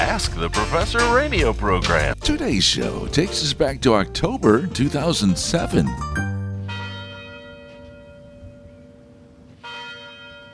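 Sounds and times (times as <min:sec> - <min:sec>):
speech: 0:00.2 - 0:06.3
university tower chimes ringing: 0:05.7 - 0:10.5.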